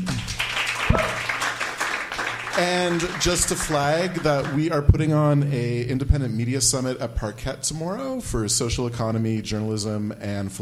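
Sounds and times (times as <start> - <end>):
audience round of applause for a discussion group: 0.0 - 4.8
speech: 2.6 - 10.6.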